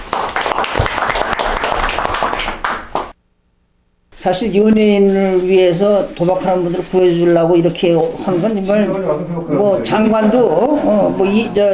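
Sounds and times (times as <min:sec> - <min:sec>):
audience applause: 0:00.0 - 0:03.1
speech: 0:04.2 - 0:11.7.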